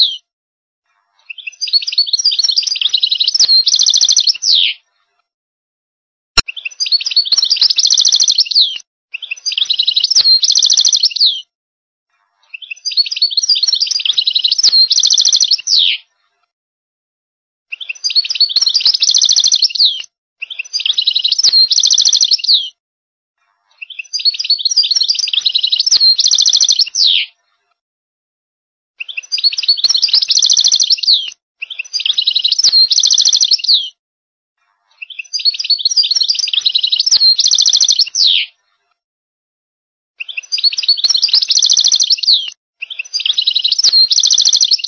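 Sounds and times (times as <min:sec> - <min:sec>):
goldfinch singing: 0:01.3 - 0:04.8, 0:06.4 - 0:11.4, 0:12.5 - 0:16.0, 0:17.7 - 0:22.7, 0:23.8 - 0:27.3, 0:29.0 - 0:33.9, 0:35.0 - 0:38.5, 0:40.2 - 0:44.8.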